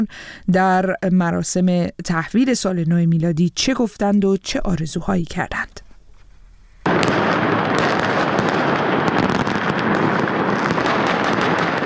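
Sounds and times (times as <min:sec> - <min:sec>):
speech: 0:00.0 - 0:05.8
fireworks exploding over city square: 0:06.8 - 0:11.8.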